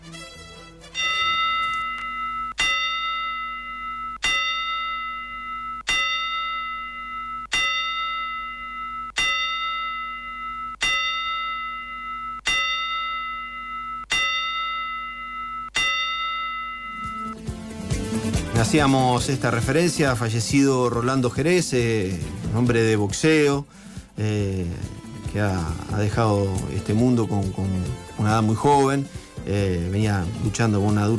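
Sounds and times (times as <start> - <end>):
boxing bell rung in tribute to a deceased boxing figure: 1.0 - 17.4
speech: 18.6 - 31.1.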